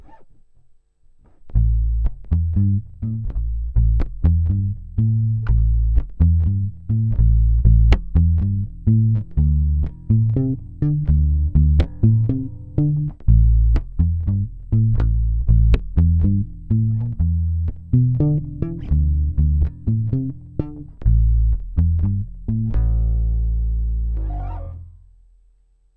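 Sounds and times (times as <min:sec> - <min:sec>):
bass: 0:00.0 - 0:25.9.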